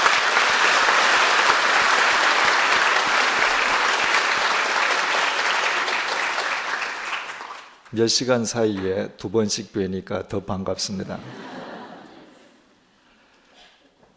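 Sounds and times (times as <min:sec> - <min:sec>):
audience applause: 0:00.0 - 0:07.9
speech: 0:07.9 - 0:11.6
laughter: 0:11.1 - 0:12.7.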